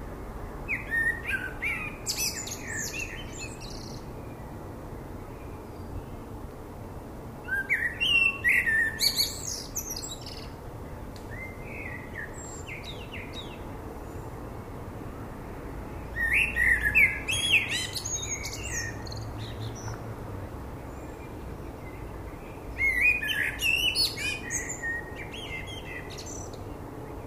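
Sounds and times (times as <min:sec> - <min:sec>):
common blackbird singing: 0:00.7 - 0:04.0, 0:07.4 - 0:10.6, 0:11.3 - 0:13.6, 0:16.1 - 0:20.0, 0:20.9 - 0:27.2.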